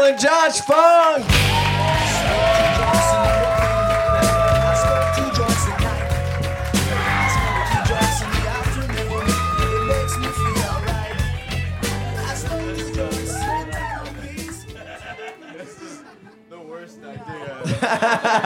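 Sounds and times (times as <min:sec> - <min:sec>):
speech: 0:00.0 - 0:02.4, 0:16.8 - 0:18.4
live audience applause: 0:00.0 - 0:15.4
laughter: 0:02.1 - 0:18.4.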